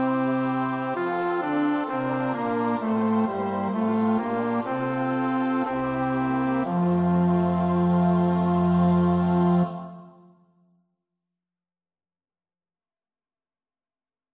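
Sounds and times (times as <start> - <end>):
bass choir part practice: 0.0 - 10.3.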